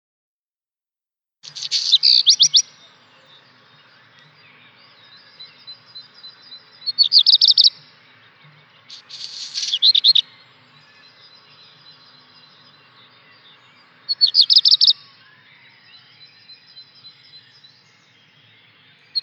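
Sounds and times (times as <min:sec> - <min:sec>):
black redstart giving scratchy rattling notes: 0:01.4 - 0:15.0.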